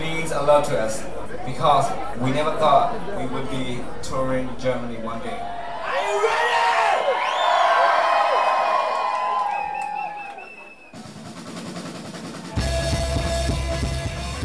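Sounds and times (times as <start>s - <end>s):
speech: 0.4s - 6.4s
concert crowd cheering and whooping: 5.4s - 14.4s
band with pounding bass and drums: 10.9s - 14.4s.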